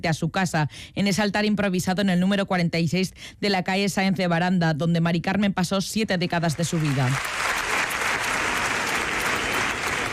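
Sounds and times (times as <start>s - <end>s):
speech: 0.0s - 7.6s
crowd applause at a protest: 6.8s - 10.1s.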